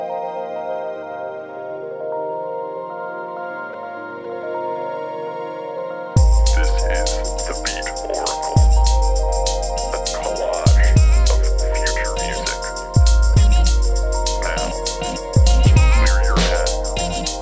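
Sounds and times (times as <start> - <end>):
music beat: 6.2 - 17.4.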